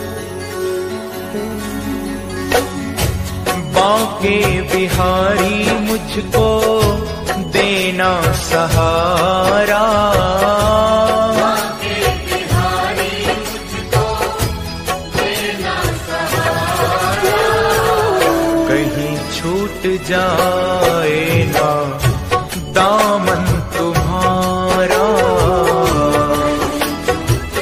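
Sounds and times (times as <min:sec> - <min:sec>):
bhajan ringtone: 0:00.0 - 0:14.6, 0:15.2 - 0:27.2.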